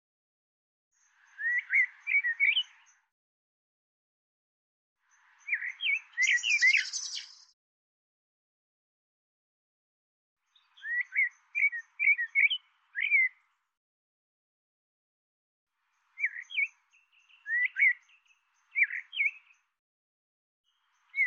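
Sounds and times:
bird twittering chirps: 1.0 - 3.0, 5.4 - 7.5, 10.5 - 13.4, 16.0 - 19.6, 20.8 - 21.2.

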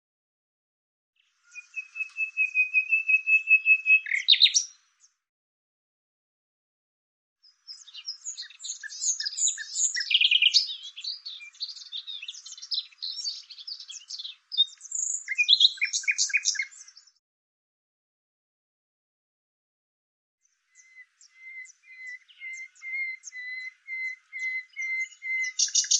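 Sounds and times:
thin high bird chirps: 1.2 - 5.2, 7.4 - 17.2, 20.4 - 25.9.

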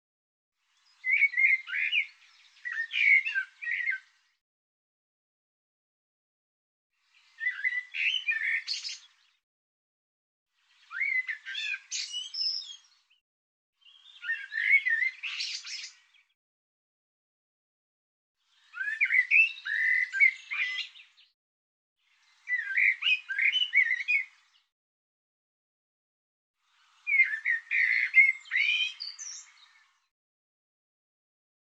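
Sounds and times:
bird song: 0.6 - 4.4, 7.0 - 9.4, 10.6 - 13.2, 13.8 - 16.4, 18.4 - 21.4, 22.0 - 24.7, 26.6 - 30.1.

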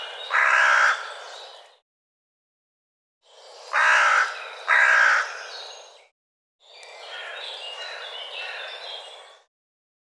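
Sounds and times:
bird harsh rasping calls: 0.0 - 1.5, 3.4 - 5.8, 7.1 - 9.2.

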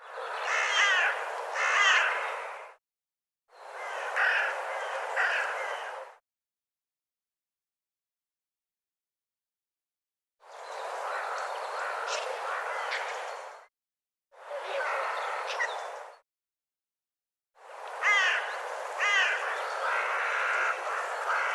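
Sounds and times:
bird giving harsh nasal cawing calls: 0.3 - 2.7, 3.7 - 6.2, 11.0 - 13.5, 14.7 - 15.9, 18.0 - 21.5.

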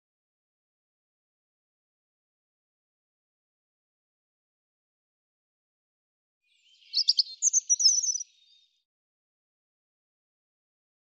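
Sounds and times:
European robin singing: 6.5 - 8.8.

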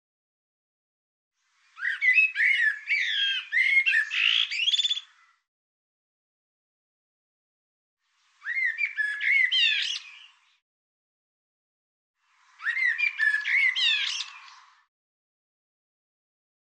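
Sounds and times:
bird song: 1.4 - 5.5, 8.0 - 10.6, 12.2 - 14.9.

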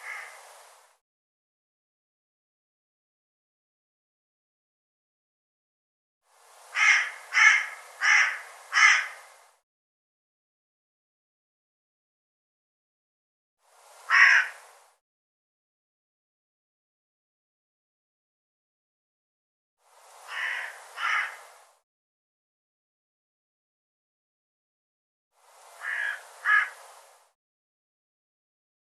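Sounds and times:
bird harsh calls: 0.0 - 0.4, 6.8 - 9.2, 14.1 - 14.6, 20.3 - 21.4, 25.8 - 26.8.

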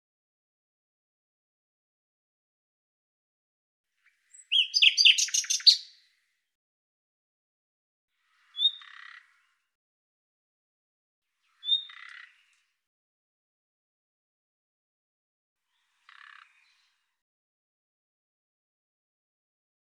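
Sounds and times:
bird calls with high sharp notes and buzzy lower tail: 4.0 - 6.0, 8.2 - 9.6, 11.5 - 12.7.

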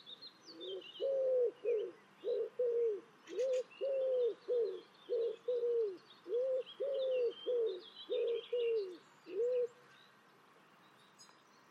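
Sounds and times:
bird giving low cooing notes: 0.5 - 9.8.

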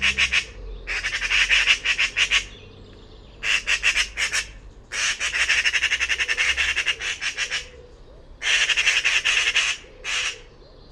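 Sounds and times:
harsh rasping pulsing bird calls: 0.0 - 10.9.

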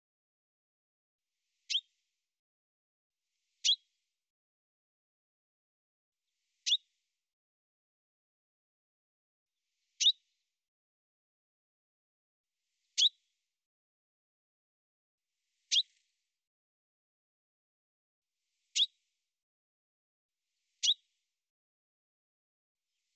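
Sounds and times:
bird chirping: 1.7 - 1.9, 13.0 - 13.2, 15.7 - 16.0, 18.7 - 19.0, 20.8 - 21.1.

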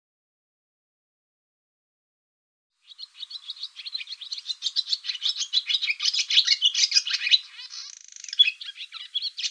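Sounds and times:
barn swallow twittering: 2.8 - 9.5.

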